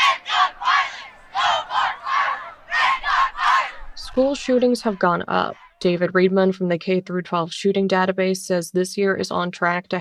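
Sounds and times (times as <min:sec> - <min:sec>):
crowd of young voices shouting a chant at a protest walkout: 0:00.0 - 0:05.9
speech: 0:04.2 - 0:10.0.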